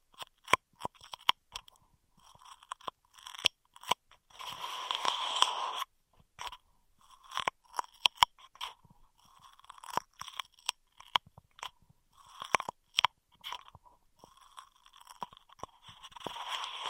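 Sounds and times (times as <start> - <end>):
intense straw triggers: 0.1 - 16.8.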